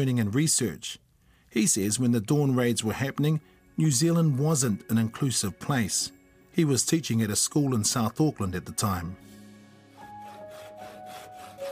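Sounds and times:
speech: 0:00.0 - 0:09.3
woodwork room machines sawing wood: 0:10.0 - 0:11.7.

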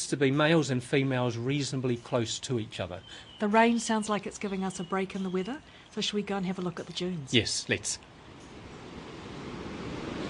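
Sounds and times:
speech: 0:00.1 - 0:08.1
waves crashing below a steep sand dune: 0:07.4 - 0:10.2.

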